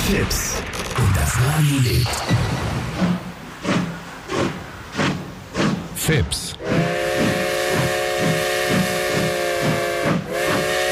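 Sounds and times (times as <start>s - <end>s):
speech: 0.1s - 0.5s, 1.4s - 3.2s, 6.1s - 6.8s
continuous hissing steam: 2.1s - 10.9s
steam train whistle: 6.6s - 10.9s.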